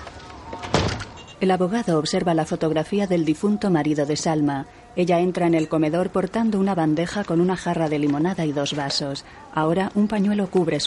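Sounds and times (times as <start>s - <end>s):
door being closed: 0.2s - 1.4s
speech: 1.4s - 10.8s.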